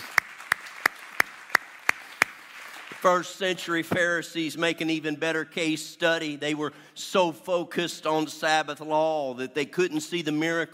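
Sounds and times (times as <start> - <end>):
audience applause: 0.0 - 3.2
speech: 2.9 - 10.7.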